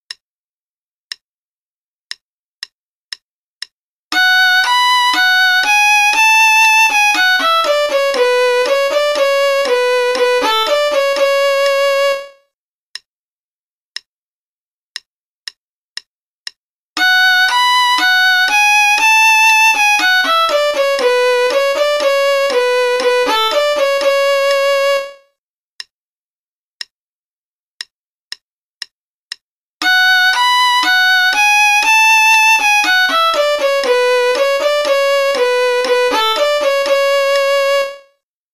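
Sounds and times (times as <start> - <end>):
play-along concerto in B minor at 60 bpm: 4.1 - 12.4, 17.0 - 25.2, 29.8 - 38.1.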